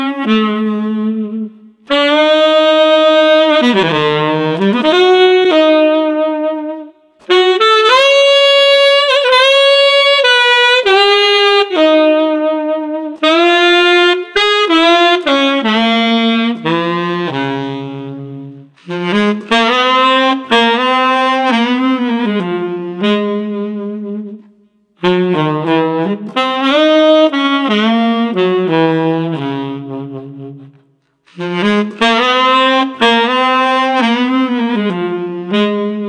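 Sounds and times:
thoughtful saxophone: 0.0s - 36.0s.

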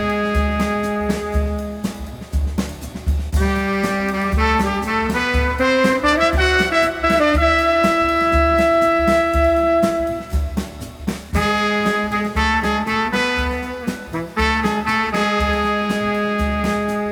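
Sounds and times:
chill street brass combo playing: 0.0s - 17.1s.

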